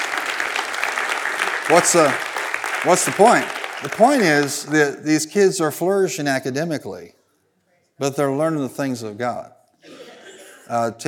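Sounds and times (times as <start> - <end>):
audience hand clapping: 0.0 - 5.2
speech: 1.7 - 7.2, 8.0 - 10.0, 10.7 - 11.0.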